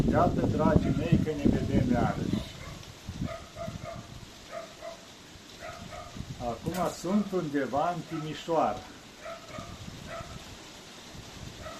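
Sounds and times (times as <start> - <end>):
speech: 0.1 - 2.5, 6.4 - 9.0
neighbor's dog barking: 2.6 - 6.2, 9.2 - 10.4, 11.6 - 11.7.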